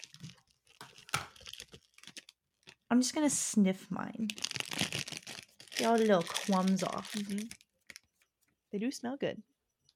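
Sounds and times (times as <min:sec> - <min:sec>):
plastic cookie package wrapper crinkling and tearing: 0:00.0 - 0:03.2, 0:04.1 - 0:08.3
speech: 0:02.9 - 0:04.5, 0:05.8 - 0:07.6, 0:08.7 - 0:09.5.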